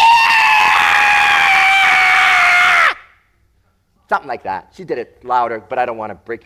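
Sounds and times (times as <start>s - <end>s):
person imitating a woman screaming: 0.0s - 3.1s
speech: 4.2s - 6.4s.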